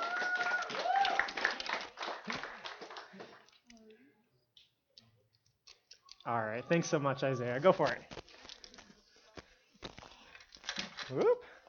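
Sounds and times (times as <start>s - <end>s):
audience applause: 0.0s - 3.4s
speech: 6.3s - 8.2s, 11.1s - 11.4s.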